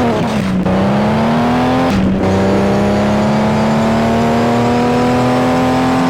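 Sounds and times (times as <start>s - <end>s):
vehicles passing: 0.0s - 6.0s.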